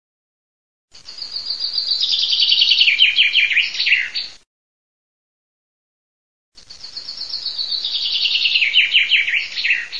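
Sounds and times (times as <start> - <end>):
common chaffinch singing: 1.0 - 4.4, 6.6 - 9.9.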